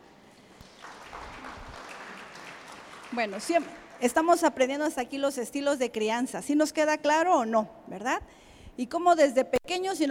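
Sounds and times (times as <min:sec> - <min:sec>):
audience applause: 0:00.6 - 0:04.0
speech: 0:03.1 - 0:10.0.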